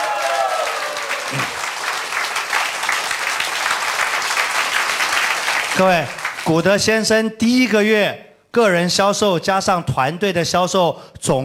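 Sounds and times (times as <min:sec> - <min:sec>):
audience applause: 0:00.0 - 0:06.5
speech: 0:01.3 - 0:01.6, 0:05.8 - 0:11.4.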